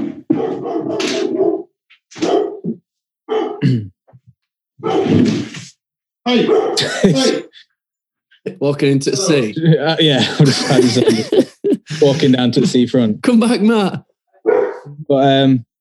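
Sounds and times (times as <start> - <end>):
dog barking and whining: 0.0 - 3.6, 4.8 - 5.2, 6.3 - 6.9, 14.4 - 15.0
speech: 3.6 - 4.0, 4.8 - 5.6, 6.3 - 7.4, 8.4 - 14.1, 15.1 - 15.7
laughter: 6.8 - 7.6, 9.2 - 13.1.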